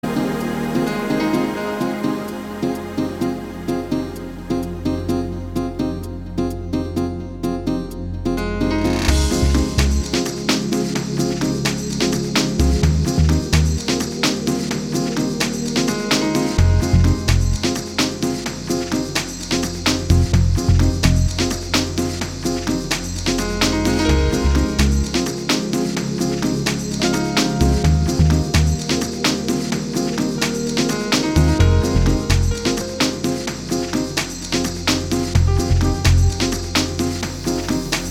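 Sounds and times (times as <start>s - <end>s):
ambient music mix: 0.0s - 38.0s.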